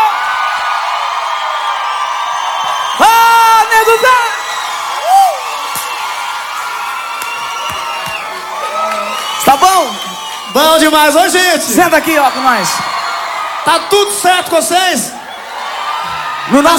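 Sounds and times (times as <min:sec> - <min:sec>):
audience applause: 0:00.0 - 0:16.7
speech: 0:10.6 - 0:13.0, 0:13.6 - 0:15.2, 0:16.5 - 0:16.7.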